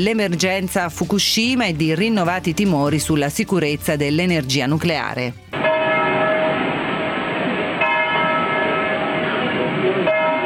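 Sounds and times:
speech: 0.0 - 5.4
church bell tolling for Chernobyl disaster anniversary: 5.6 - 10.4.

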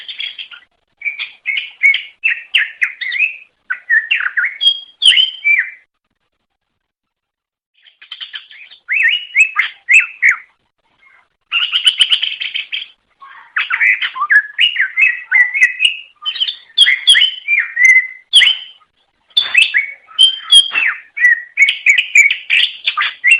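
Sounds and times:
leafbird chattering whistled song: 0.0 - 5.9, 7.8 - 23.3.

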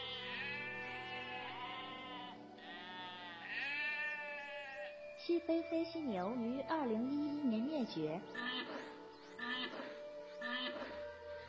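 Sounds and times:
Pyrenean ibex bleating: 0.0 - 5.0, 8.3 - 8.8, 9.4 - 11.1
speech: 5.3 - 8.5.

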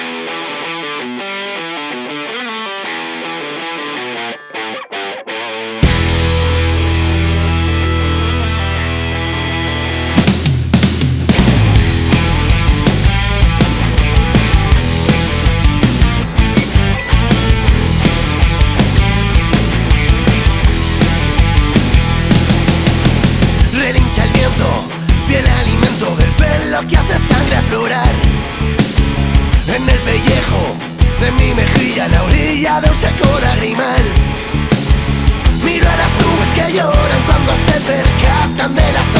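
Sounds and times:
rock song playing on radio: 0.0 - 39.1.

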